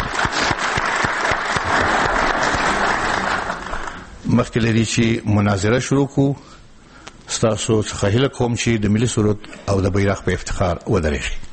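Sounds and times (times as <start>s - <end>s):
audience in a hall applauding debate candidates: 0.0s - 4.2s
speech: 4.4s - 6.6s, 7.4s - 11.5s.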